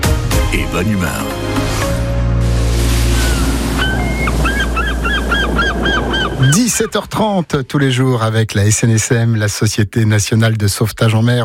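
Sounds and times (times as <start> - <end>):
speech: 0.7 - 1.7, 6.5 - 11.4
sea waves at Penguen beach, Saint-Calguildo, Côtes d'Armor: 1.5 - 7.2
honking bird calls: 3.1 - 7.0.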